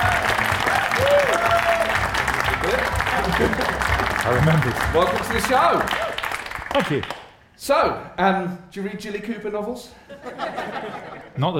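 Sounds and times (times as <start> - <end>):
studio audience shouting and cheering: 0.0 - 6.2
studio audience applause for Philip Hammond: 0.0 - 7.3
laughter: 1.0 - 6.1, 10.1 - 11.4
speech: 4.2 - 6.0, 6.8 - 11.5.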